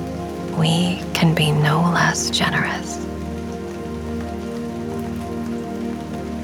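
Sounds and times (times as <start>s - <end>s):
rain falling on a surface: 0.0s - 6.4s
speech: 0.6s - 3.1s.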